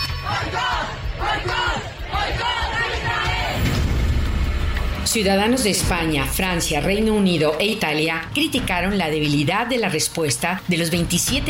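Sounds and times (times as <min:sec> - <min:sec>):
protest crowd chanting slogans in the Spanish capital: 0:00.2 - 0:03.8
speech: 0:05.1 - 0:11.4.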